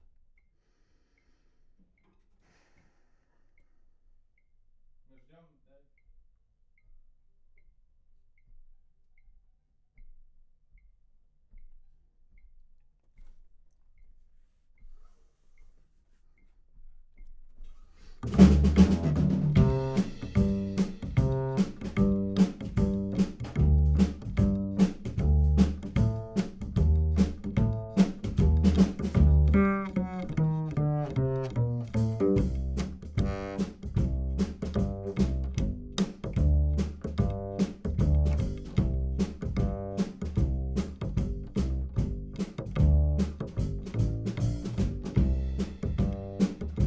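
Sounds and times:
bass: 18.2s - 46.8s.

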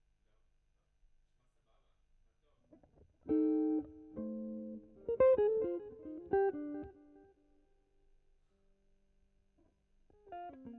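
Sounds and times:
guitar: 2.6s - 7.8s, 9.6s - 10.7s.

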